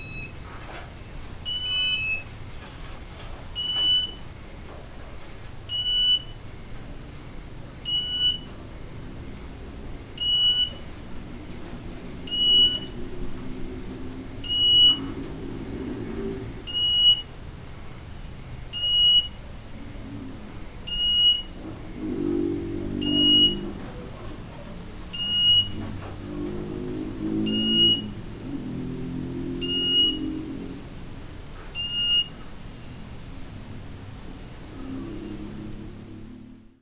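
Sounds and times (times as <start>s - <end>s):
bird beeping call: 0.0s - 0.4s, 1.0s - 2.4s, 3.6s - 4.4s, 5.7s - 6.5s, 7.8s - 8.7s, 10.1s - 11.1s, 12.2s - 13.4s, 14.4s - 15.7s, 16.6s - 18.0s, 18.7s - 20.2s, 20.8s - 24.1s, 25.1s - 26.2s, 27.3s - 28.4s, 29.6s - 30.6s, 31.6s - 33.0s
low droning hum: 6.3s - 36.8s.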